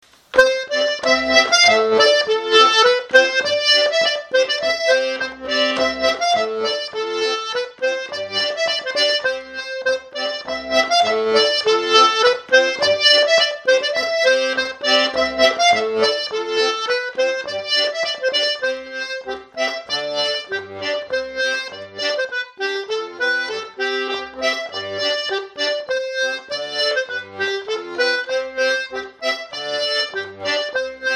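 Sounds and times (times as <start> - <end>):
polka music: 0.2 - 31.1.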